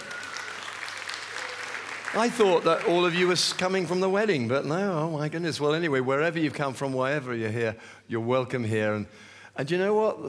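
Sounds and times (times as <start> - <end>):
crowd clapping: 0.0 - 4.2
speech: 2.1 - 10.2.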